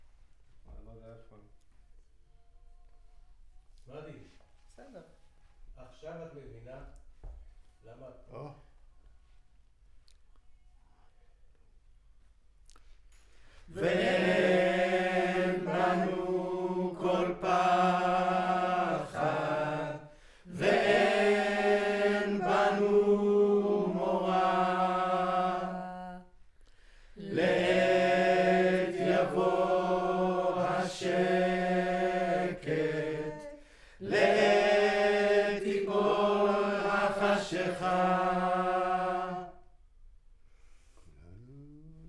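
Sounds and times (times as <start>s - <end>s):
choir recorded with center U47 microphone: 13.7s - 26.4s, 27.2s - 39.8s.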